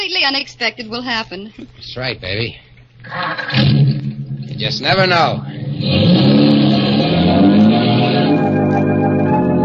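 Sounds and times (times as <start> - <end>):
speech: 0.1 - 3.9, 4.5 - 6.3
car engine revving while driving: 3.5 - 9.5.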